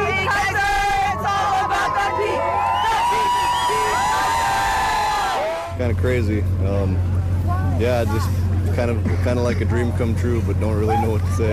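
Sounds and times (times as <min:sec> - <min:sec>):
welcoming crowd cheering at race finish: 0:00.0 - 0:05.8
speech: 0:05.9 - 0:11.5.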